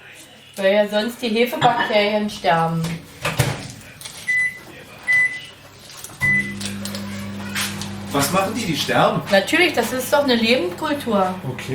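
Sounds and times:
faint kitchen clatter: 0.0s - 11.7s
speech: 0.6s - 3.1s, 8.2s - 11.7s
microwave oven electronic beeps while being set: 4.3s - 5.5s, 6.2s - 9.2s
microwave oven humming: 6.2s - 11.7s.

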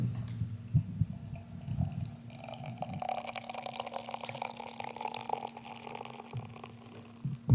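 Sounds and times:
low hum: 0.0s - 3.1s, 7.2s - 7.5s
beer flowing from freshly tapped keg: 0.9s - 7.5s.

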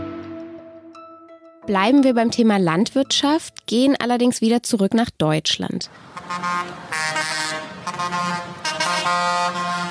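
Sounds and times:
speech: 1.7s - 7.4s, 8.0s - 9.9s
heavy vehicles rumbling: 5.9s - 9.9s
protesting tractors honking their horns: 5.9s - 9.9s.

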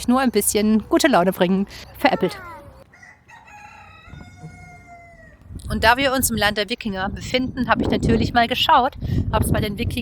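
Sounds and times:
speech: 0.0s - 2.6s, 5.7s - 9.9s
rooster crowing: 2.8s - 5.4s.

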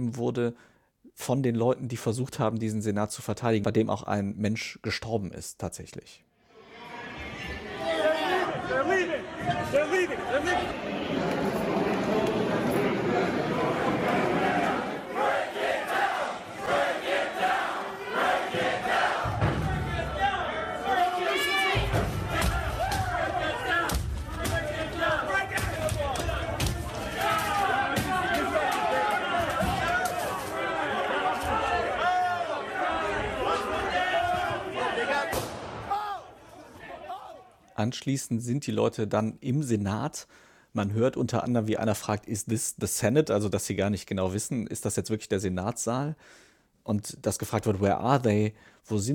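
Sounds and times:
speech: 0.0s - 6.3s, 37.8s - 49.1s
dense riot crowd shouting: 6.6s - 37.6s.

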